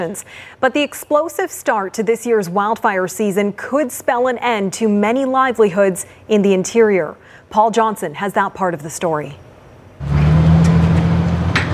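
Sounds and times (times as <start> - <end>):
speech: 0.0 - 9.4
jet boat engine revving on the Fraser River: 10.0 - 11.7.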